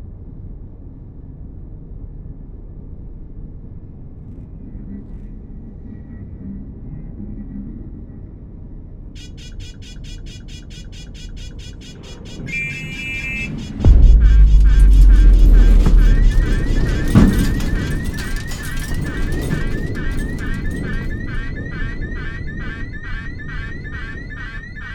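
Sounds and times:
debris field soundscape: 12.4s - 24.9s.

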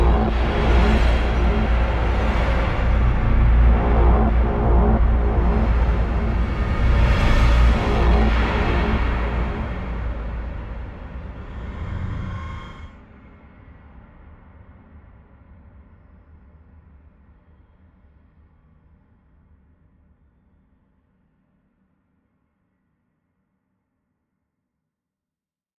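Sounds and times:
ambient combat music: 0.0s - 12.9s.

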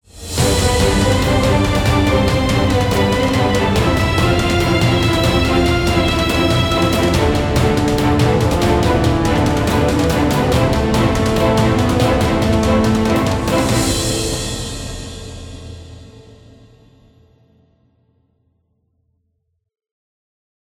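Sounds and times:
victory music: 0.0s - 16.6s.

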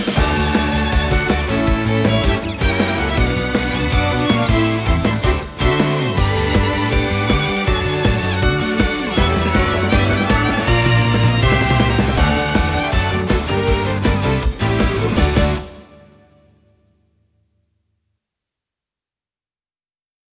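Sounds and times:
short instrumental song: 0.2s - 16.5s.

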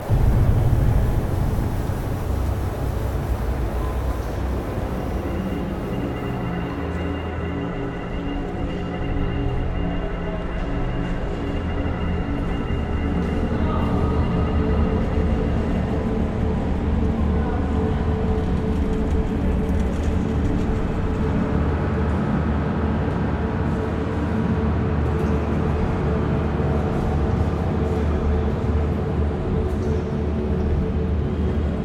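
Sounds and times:
space station interior ambience: 0.0s - 31.8s.

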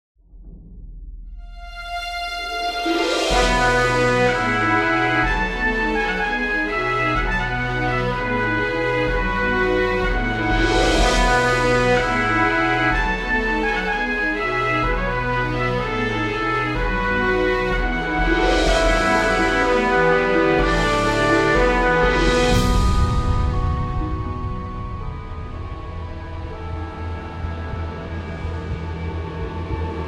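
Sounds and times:
scary intro music: 0.3s - 30.0s.

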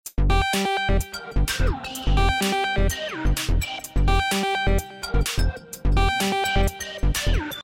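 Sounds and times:
music loop: 0.1s - 7.6s.

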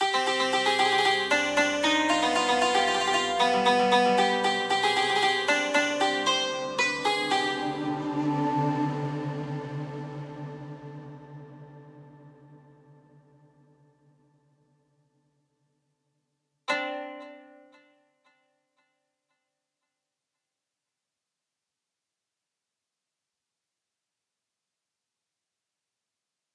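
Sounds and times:
music intro: 0.0s - 14.1s.

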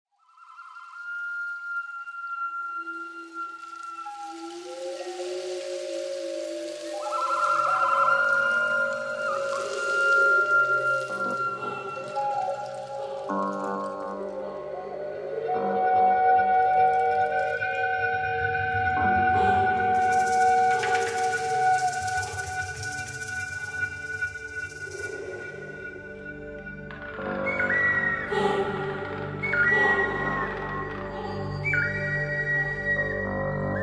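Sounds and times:
forest music: 0.1s - 33.8s.

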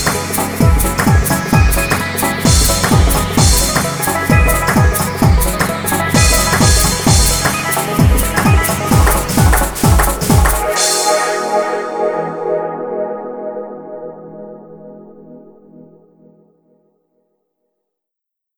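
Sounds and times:
flute: 0.0s - 14.6s.

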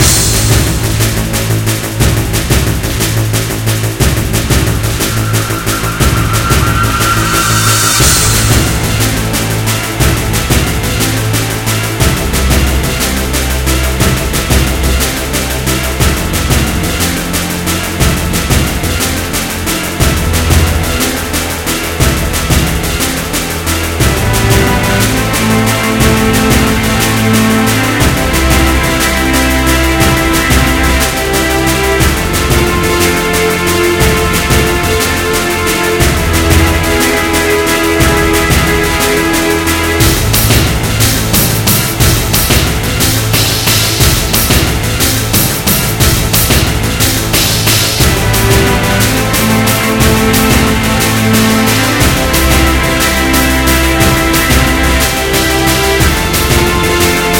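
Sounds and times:
boss fight music loop: 0.0s - 57.3s.

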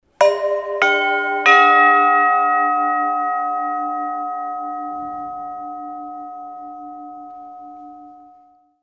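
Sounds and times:
rin gong hits: 0.2s - 7.5s.

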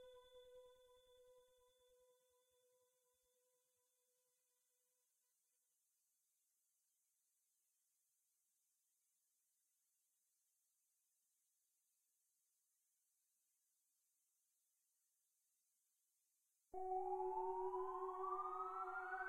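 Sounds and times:
city synth ambience from a game: 16.8s - 19.2s.

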